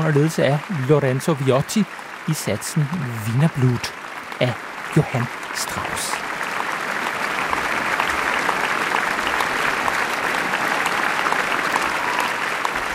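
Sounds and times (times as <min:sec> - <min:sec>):
speech: 0:00.0 - 0:06.2
concert audience applause: 0:00.0 - 0:12.9.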